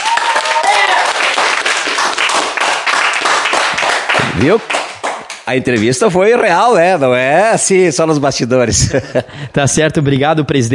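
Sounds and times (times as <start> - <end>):
children shouting: 0.0 - 1.2
children applauding: 0.0 - 5.4
speech: 4.4 - 4.8, 5.5 - 10.7.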